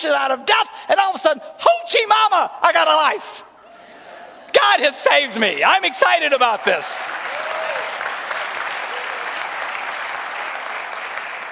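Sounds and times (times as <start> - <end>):
speech: 0.0 - 3.5, 4.5 - 7.6
large audience applause: 5.7 - 11.5.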